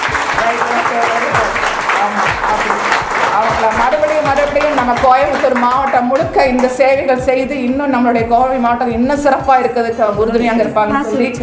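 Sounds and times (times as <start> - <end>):
audience clapping hands: 0.0 - 6.9
speech: 2.0 - 11.4.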